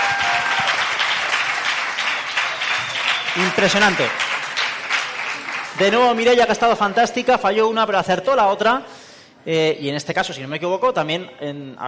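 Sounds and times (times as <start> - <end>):
audience applause: 0.0 - 7.3
speech: 3.4 - 4.3, 5.8 - 11.8.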